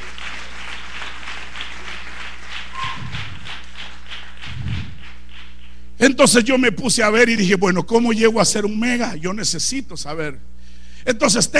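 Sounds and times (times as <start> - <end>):
audience applauding: 0.0 - 5.8
low thumps: 2.8 - 3.8, 4.4 - 5.5
speech: 6.0 - 11.5.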